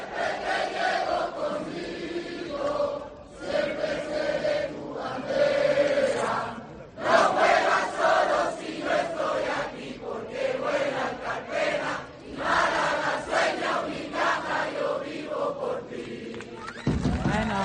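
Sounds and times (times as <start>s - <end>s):
fans singing club anthem a cappella: 0.0s - 16.7s.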